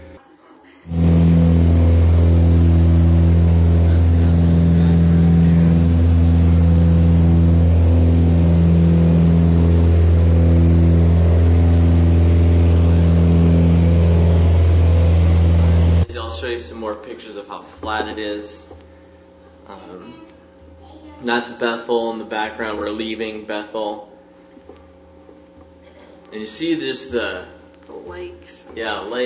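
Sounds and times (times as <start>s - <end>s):
small propeller plane engine during flight: 0.9s - 16.1s
speech: 21.3s - 24.1s, 26.3s - 29.2s.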